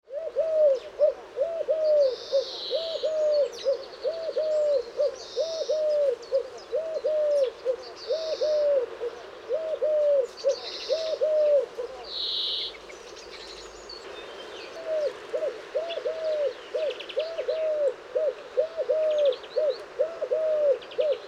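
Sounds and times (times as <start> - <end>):
Eurasian collared dove cooing: 0.0 - 12.2, 14.7 - 21.2.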